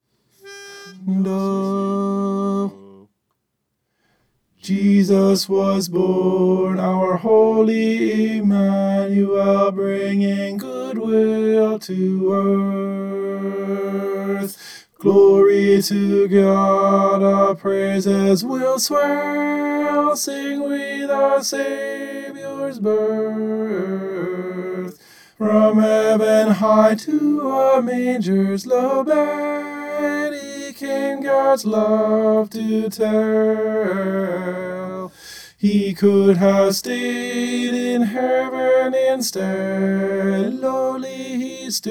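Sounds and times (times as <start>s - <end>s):
tenor singing: 0.4s - 3.1s, 4.6s - 41.8s.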